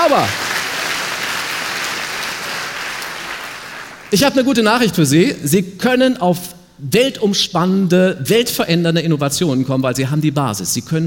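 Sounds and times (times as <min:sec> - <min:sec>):
crowd clapping: 0:00.0 - 0:04.4
speech: 0:00.1 - 0:00.4, 0:04.1 - 0:11.0.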